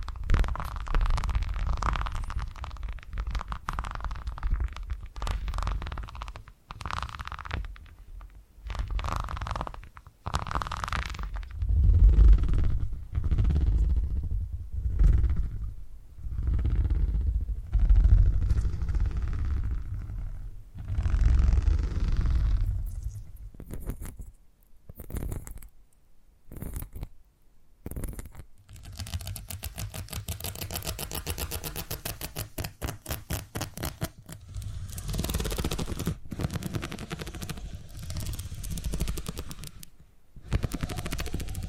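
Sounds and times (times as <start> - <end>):
purring-style ASMR deep rumbling low layer: 0.0 - 24.2, 27.9 - 41.6.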